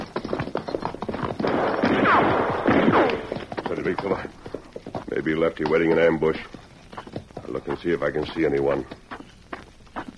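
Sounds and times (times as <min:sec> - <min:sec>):
gunshots from a ridge: 0:01.3 - 0:03.8
speech: 0:03.7 - 0:04.4, 0:05.2 - 0:06.6, 0:07.6 - 0:09.0.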